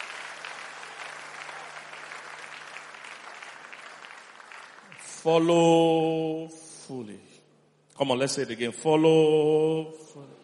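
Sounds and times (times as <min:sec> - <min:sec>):
audience applause: 0:00.0 - 0:05.3
speech: 0:05.2 - 0:07.4, 0:08.0 - 0:10.4.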